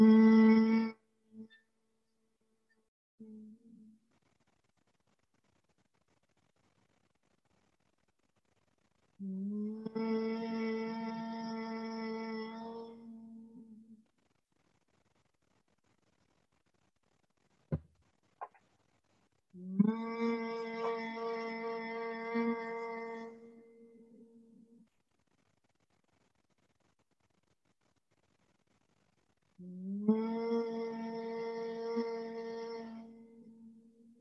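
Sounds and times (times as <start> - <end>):
humming bee breath Bhramari pranayama: 0.0 - 1.5, 9.2 - 13.9, 19.6 - 24.4, 29.6 - 33.9.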